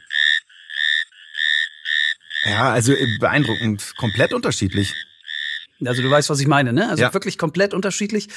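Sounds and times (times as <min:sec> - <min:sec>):
frog calling: 0:00.0 - 0:06.6
speech: 0:02.4 - 0:05.1, 0:05.8 - 0:08.3.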